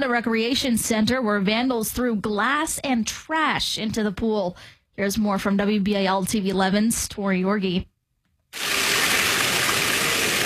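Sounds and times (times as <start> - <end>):
speech: 0.0 - 7.9
water gushing into the Tawanda Recreation Center swimming pool being refilled: 8.6 - 10.4.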